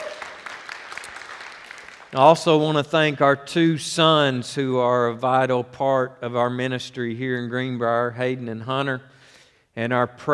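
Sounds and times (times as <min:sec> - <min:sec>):
audience applauding: 0:00.0 - 0:02.2
speech: 0:02.1 - 0:09.2, 0:09.8 - 0:10.3.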